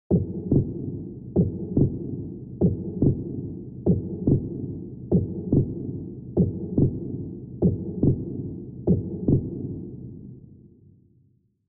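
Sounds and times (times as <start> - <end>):
slow heartbeat with reverb: 0.1 - 9.9.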